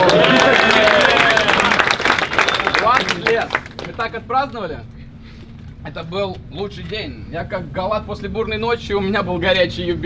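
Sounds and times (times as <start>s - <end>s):
audience clapping: 0.0s - 4.1s
speech: 4.0s - 5.0s, 5.8s - 10.0s.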